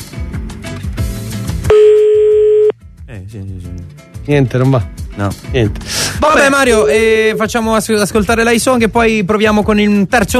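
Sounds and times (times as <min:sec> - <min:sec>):
unanswered telephone ringing: 0:01.7 - 0:02.7
speech: 0:03.1 - 0:10.3.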